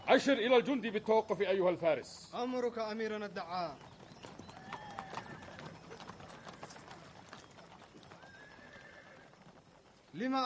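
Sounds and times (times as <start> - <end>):
army horses galloping: 0.0 - 10.4
speech: 0.1 - 3.9, 10.2 - 10.4
horse whinny: 4.1 - 9.5.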